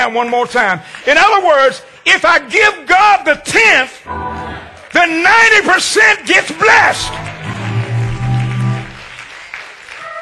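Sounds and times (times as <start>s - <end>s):
audience clapping hands: 0.0s - 1.9s, 4.6s - 10.1s
speech: 0.1s - 4.2s, 5.0s - 7.3s.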